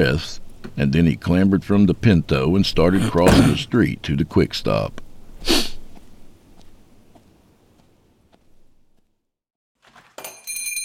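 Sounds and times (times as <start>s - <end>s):
speech: 0.0s - 5.7s
nose blowing into a handkerchief: 5.4s - 5.8s.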